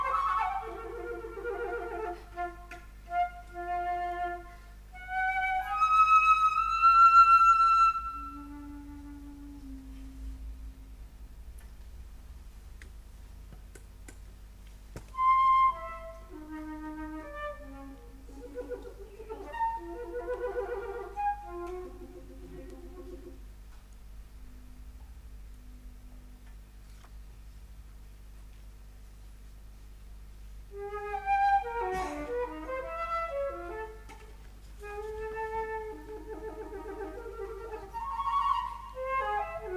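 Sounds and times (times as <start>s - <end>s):
flute: 0.0s - 11.0s, 15.1s - 23.4s, 30.7s - 39.7s.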